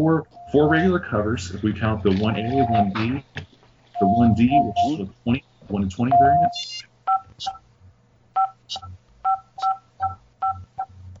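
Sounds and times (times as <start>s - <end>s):
speech: 0.0s - 7.6s, 8.7s - 8.9s
low steady hum: 0.0s - 11.1s
alarm system dual-tone keypad beeps: 2.4s - 2.9s, 4.0s - 5.0s, 6.1s - 7.6s, 8.4s - 10.9s.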